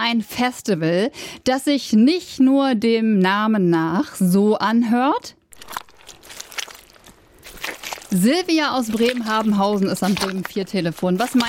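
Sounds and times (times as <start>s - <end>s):
speech: 0.1s - 5.8s, 8.1s - 11.4s
footsteps squelching through thick mud of a Wadden Sea mudflat: 5.5s - 11.4s.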